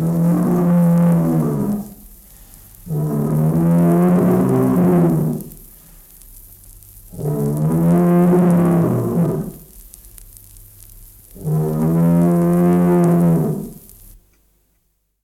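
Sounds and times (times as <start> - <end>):
bull bellowing a long deep moo: 0.0 - 2.0, 2.9 - 5.5, 7.1 - 9.6, 11.4 - 13.8.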